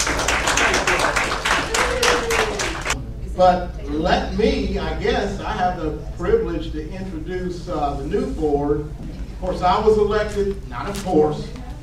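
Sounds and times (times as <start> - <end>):
audience applause: 0.0 - 3.0
speech: 3.4 - 11.6.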